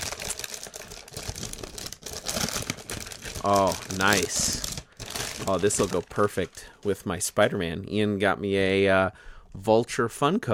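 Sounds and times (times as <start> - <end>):
packaging crinkling: 0.0 - 7.0
speech: 3.4 - 4.7, 5.4 - 10.5.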